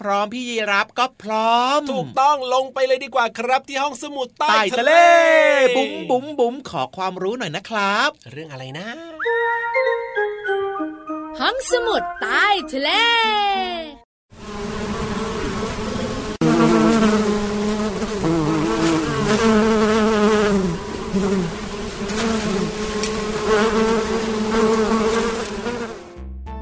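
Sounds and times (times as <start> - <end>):
speech: 0.0 - 9.7, 11.4 - 13.8
bee buzzing while sucking flower nectar: 14.3 - 26.1.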